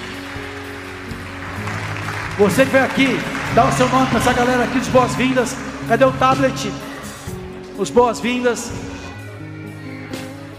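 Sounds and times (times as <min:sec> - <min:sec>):
audience applause: 0:00.0 - 0:08.4
speech: 0:02.4 - 0:06.8, 0:07.8 - 0:08.9.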